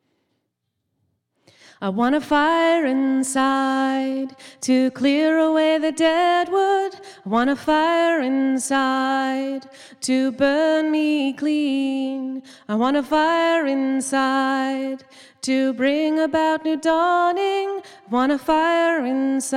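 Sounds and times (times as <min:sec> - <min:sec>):
vocals: 0:01.4 - 0:19.5.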